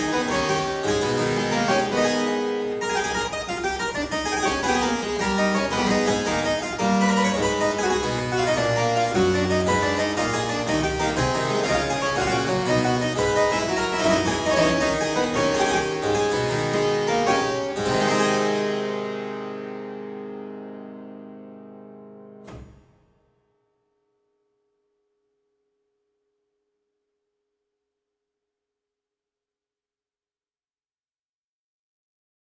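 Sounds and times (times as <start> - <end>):
harpsichord playing a gigue in A minor: 0.0 - 18.8.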